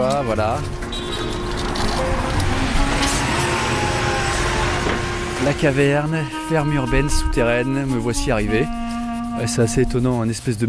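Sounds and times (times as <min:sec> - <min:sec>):
car traffic on a city street: 0:00.0 - 0:09.5
speech: 0:00.2 - 0:00.8, 0:05.4 - 0:08.8, 0:09.4 - 0:10.6
vehicle passing whoosh: 0:00.6 - 0:07.2.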